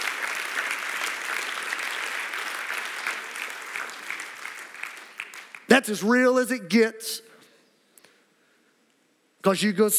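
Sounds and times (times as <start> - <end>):
audience applauding: 0.0 - 5.7
speech: 5.8 - 7.3, 9.4 - 9.9.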